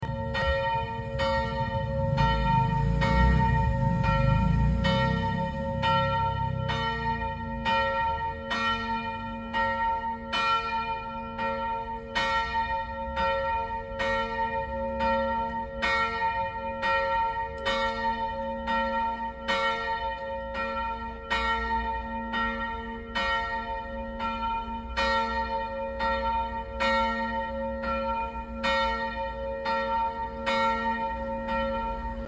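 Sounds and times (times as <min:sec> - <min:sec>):
bells ringing at the end of mass: 0:00.0 - 0:32.2.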